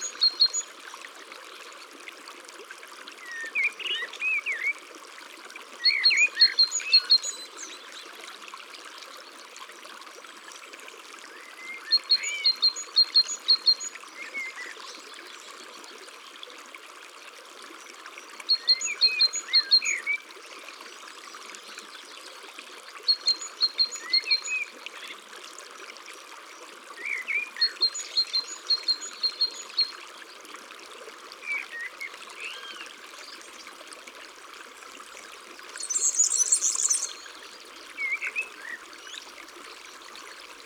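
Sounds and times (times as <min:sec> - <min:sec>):
steady rushing water: 0:00.0 - 0:40.6
other birds chirping: 0:35.8 - 0:37.4.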